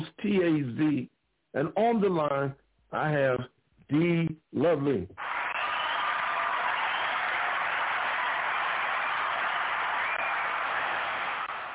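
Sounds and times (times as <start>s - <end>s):
speech: 0.2s - 5.3s
audience clapping: 5.2s - 11.7s.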